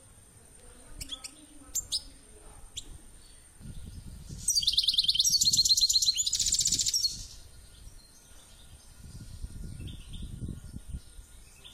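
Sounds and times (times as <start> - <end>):
finch chirping: 1.0 - 2.9, 4.3 - 10.4.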